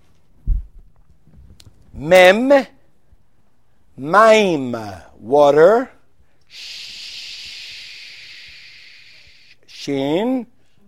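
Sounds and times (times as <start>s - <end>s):
speech: 2.0s - 2.8s, 4.0s - 6.9s, 9.8s - 10.5s
voice making a shh hiss imitating burning fire: 6.5s - 9.9s.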